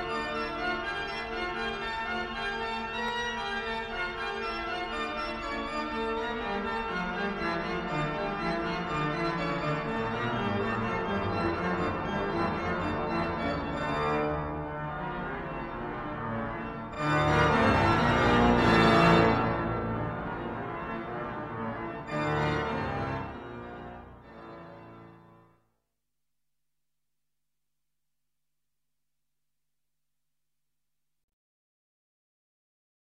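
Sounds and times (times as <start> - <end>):
organ piece: 0.0 - 25.6.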